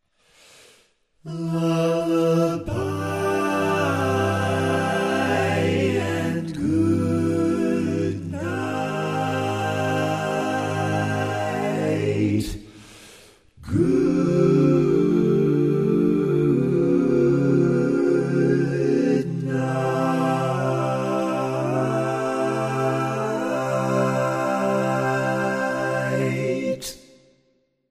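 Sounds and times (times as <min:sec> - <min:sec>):
barbershop vocal harmony tags, all parts: 0:01.3 - 0:12.7, 0:13.6 - 0:27.1.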